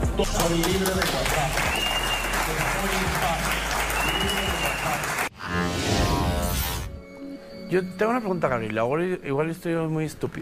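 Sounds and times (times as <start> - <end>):
crowd clapping, possibly recorded applause: 0.2 - 5.3
speech: 0.2 - 5.9, 7.7 - 10.3.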